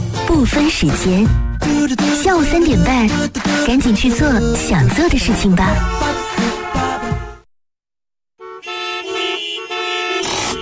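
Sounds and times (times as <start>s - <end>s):
speech: 0.3s - 6.2s
car horns honking in a traffic jam: 5.7s - 7.4s, 8.4s - 10.6s.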